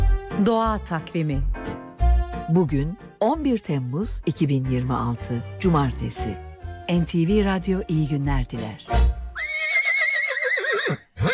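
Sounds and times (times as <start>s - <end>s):
speech: 0.4s - 1.8s, 2.5s - 9.0s
horse whinnying: 9.4s - 11.3s.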